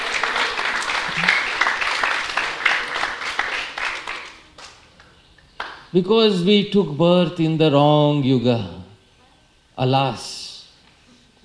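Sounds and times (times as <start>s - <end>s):
audience applause: 0.0s - 4.8s
speech: 5.9s - 8.8s, 9.8s - 10.3s.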